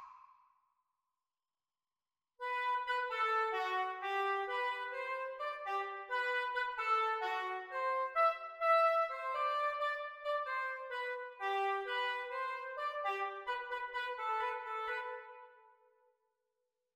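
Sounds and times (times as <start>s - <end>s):
oboe duet: 2.4s - 15.6s.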